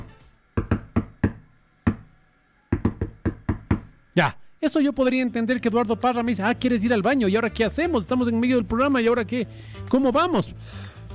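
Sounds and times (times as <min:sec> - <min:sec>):
knocking on a wooden tabletop in Morse code: 0:00.6 - 0:02.1, 0:02.7 - 0:04.0
speech: 0:04.2 - 0:11.1.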